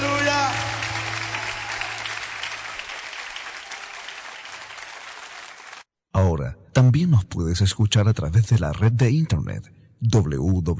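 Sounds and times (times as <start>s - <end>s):
audience clapping hands: 0.0s - 5.9s
speech: 6.8s - 10.7s.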